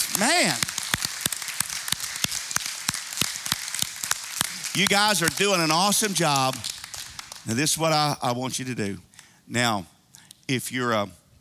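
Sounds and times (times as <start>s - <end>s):
audience hand clapping: 0.0s - 8.1s
speech: 0.2s - 0.7s, 4.8s - 6.7s, 7.4s - 9.9s, 10.5s - 11.2s.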